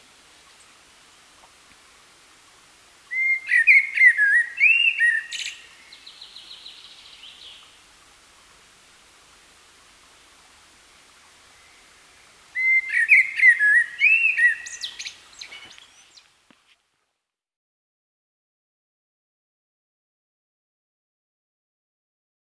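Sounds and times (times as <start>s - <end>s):
common blackbird singing: 3.1s - 7.7s, 12.6s - 16.3s.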